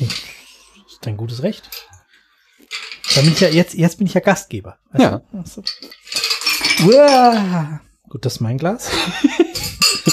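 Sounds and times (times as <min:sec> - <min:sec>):
speech: 0:01.0 - 0:01.9, 0:03.2 - 0:06.1, 0:06.8 - 0:10.1
cocktail strainer slipping and clattering: 0:02.7 - 0:03.6, 0:05.6 - 0:07.4, 0:09.5 - 0:10.1
laughter: 0:08.8 - 0:10.1.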